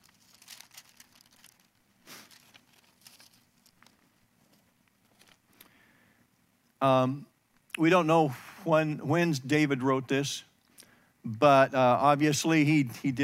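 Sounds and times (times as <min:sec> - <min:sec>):
Bible pages rustling as they are turned: 0:00.0 - 0:05.7
speech: 0:06.8 - 0:10.5, 0:11.2 - 0:13.2.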